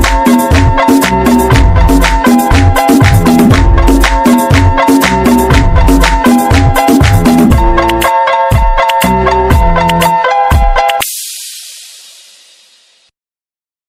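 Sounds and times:
Azeri bass music remix: 0.0s - 11.0s.

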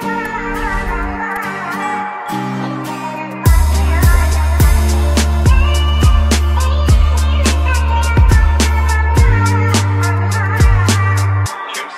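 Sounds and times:
Azeri bass music remix: 0.1s - 1.3s, 3.5s - 11.5s.

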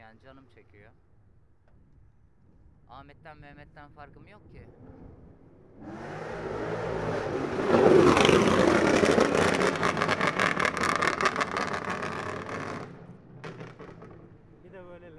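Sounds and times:
speech: 0.3s - 2.0s, 2.9s - 7.9s
car engine revving: 5.7s - 14.9s.

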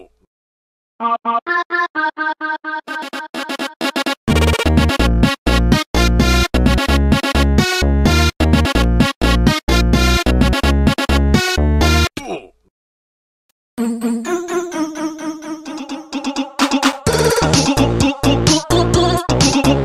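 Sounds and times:
phonk remix: 1.3s - 12.1s, 14.8s - 19.8s.

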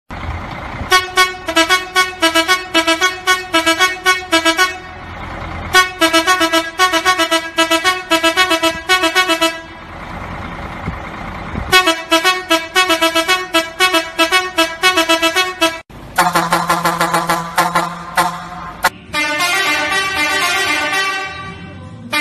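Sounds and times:
modified Axor truck horn: 0.8s - 9.9s, 11.7s - 22.1s.

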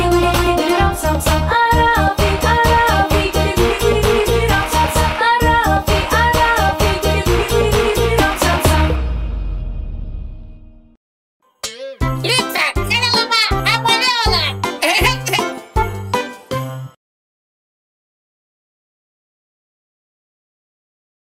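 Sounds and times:
fun children's dance song: 0.0s - 9.1s, 11.6s - 16.9s.

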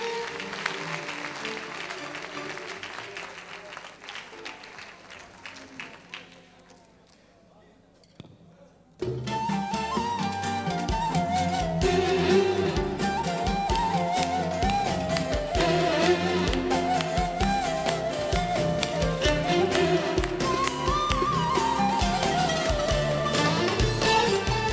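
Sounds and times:
audience applause for composer and musicians: 0.0s - 7.0s, 12.6s - 24.7s
loud music: 9.3s - 24.7s.

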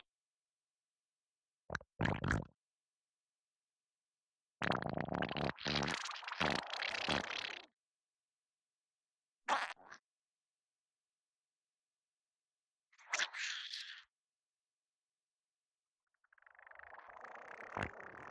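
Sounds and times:
wet fart from diarrhea: 1.7s - 2.5s, 4.6s - 7.7s, 9.5s - 10.0s, 16.6s - 18.2s.

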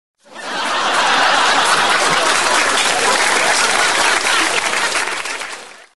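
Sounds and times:
person laughing loudly: 0.7s - 4.8s.

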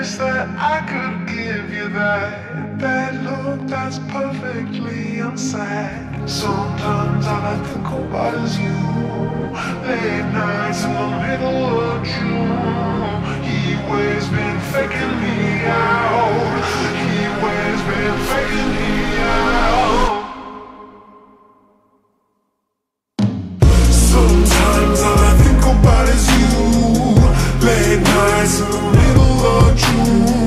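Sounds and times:
slowed music with reverb: 0.0s - 22.1s, 23.6s - 30.4s.

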